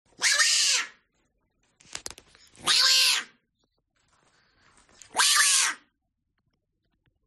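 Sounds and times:
hyrax screaming: 0.1 - 1.0, 2.6 - 3.4, 5.1 - 5.9.

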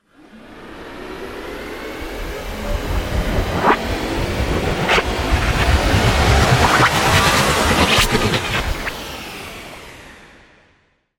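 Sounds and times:
science machine powering up: 2.4 - 10.0.

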